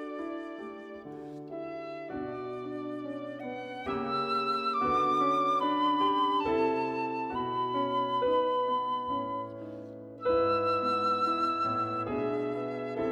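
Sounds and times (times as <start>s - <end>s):
piano: 0.0s - 13.1s
piccolo: 0.0s - 13.1s.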